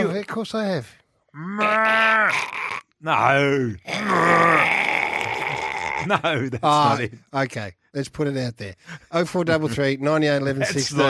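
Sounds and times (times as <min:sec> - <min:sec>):
speech: 0:00.0 - 0:04.8, 0:06.0 - 0:11.0
person imitating a koala's grunting call: 0:01.4 - 0:03.0, 0:03.9 - 0:06.1
laughter: 0:05.8 - 0:07.2, 0:08.9 - 0:11.0.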